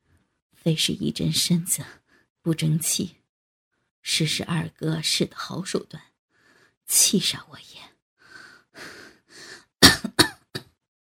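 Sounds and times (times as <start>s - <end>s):
speech: 0.6s - 3.2s, 4.0s - 6.1s, 6.9s - 7.9s
person coughing violently: 9.8s - 10.8s.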